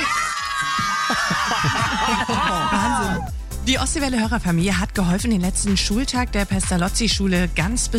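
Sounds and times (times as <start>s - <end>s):
cheering and laughter of schoolchildren: 0.0s - 3.3s
crowd of schoolchildren shrieking and shouting in celebration on a tractor wagon: 0.0s - 3.3s
speech: 3.7s - 7.9s.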